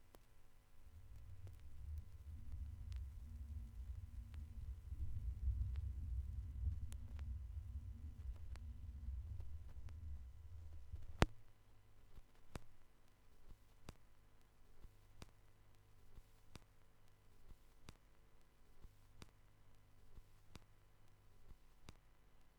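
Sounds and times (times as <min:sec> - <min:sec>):
vinyl record noise: 0:00.0 - 0:12.8.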